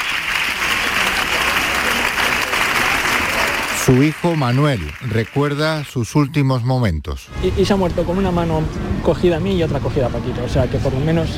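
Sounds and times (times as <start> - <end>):
theatre audience applause: 0.0 - 6.0
speech: 3.9 - 11.3.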